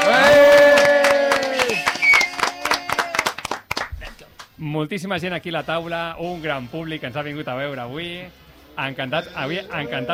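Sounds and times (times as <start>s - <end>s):
studio audience ovation: 0.0s - 3.8s
speech: 4.6s - 10.1s.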